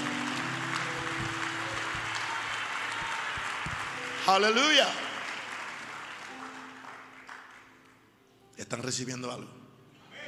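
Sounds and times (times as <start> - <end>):
audience applause: 0.0 - 7.7
speech: 4.3 - 5.0, 8.6 - 9.6.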